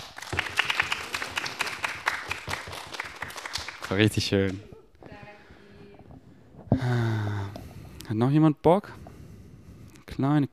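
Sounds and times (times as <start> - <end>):
audience applause: 0.0 - 4.6
speech: 3.9 - 4.7, 8.2 - 9.0, 10.2 - 10.5.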